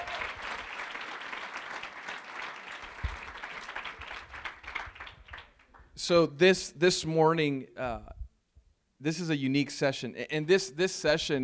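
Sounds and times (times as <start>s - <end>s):
hand clapping: 0.0s - 5.9s
speech: 6.1s - 8.2s, 9.0s - 11.4s.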